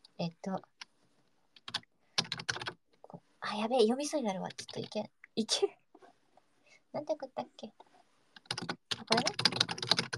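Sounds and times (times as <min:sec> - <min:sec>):
speech: 0:00.2 - 0:00.8, 0:03.5 - 0:05.8, 0:06.9 - 0:07.9, 0:09.1 - 0:09.6
keyboard typing: 0:01.5 - 0:02.8, 0:08.4 - 0:10.1.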